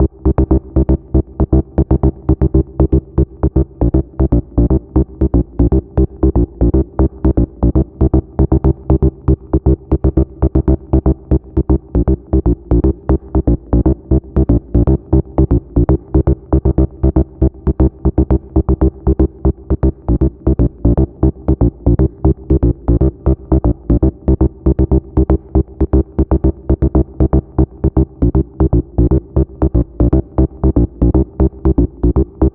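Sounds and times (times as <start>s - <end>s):
wet rave bass in C at 118 BPM: 0.0s - 32.5s.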